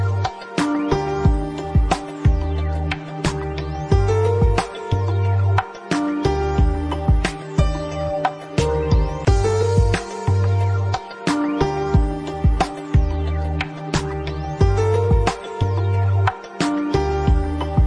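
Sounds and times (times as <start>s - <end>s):
romantic music: 0.0s - 17.8s.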